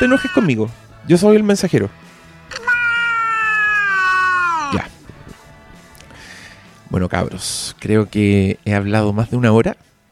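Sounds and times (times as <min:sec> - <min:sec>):
cat meowing: 0:00.0 - 0:00.5, 0:02.5 - 0:04.9
speech: 0:00.0 - 0:02.6, 0:06.9 - 0:09.9.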